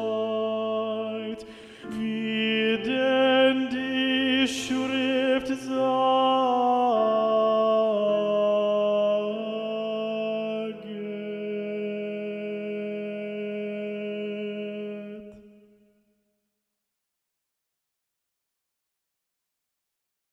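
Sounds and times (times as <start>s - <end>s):
tenor singing: 0.0s - 15.6s.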